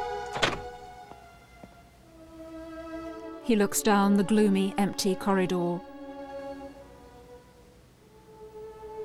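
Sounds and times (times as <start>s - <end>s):
door being opened: 0.1s - 0.9s
speech: 3.5s - 5.9s.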